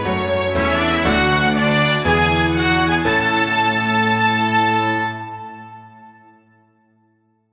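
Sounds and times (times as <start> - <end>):
fanfare: 0.1 - 6.1.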